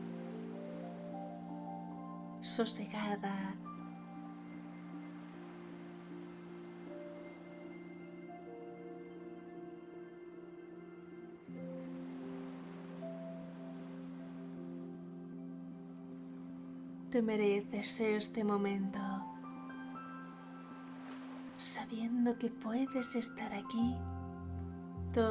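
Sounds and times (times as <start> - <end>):
ocean waves rolling in and out: 0.0 - 2.1, 3.6 - 17.1, 19.2 - 23.4
speech: 2.4 - 3.7, 17.1 - 19.1, 21.9 - 24.2.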